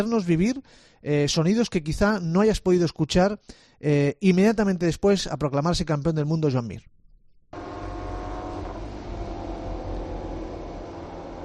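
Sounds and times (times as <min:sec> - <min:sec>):
speech: 0:00.0 - 0:06.9
racing motorcycles: 0:07.6 - 0:11.4.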